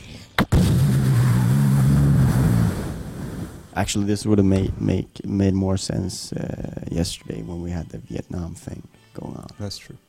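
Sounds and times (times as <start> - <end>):
small explosion sound effect: 0.4 - 3.8
speech: 3.8 - 10.0.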